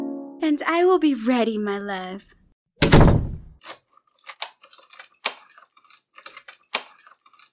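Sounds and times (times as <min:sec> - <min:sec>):
speech: 0:00.5 - 0:02.4
door being locked: 0:02.8 - 0:03.4.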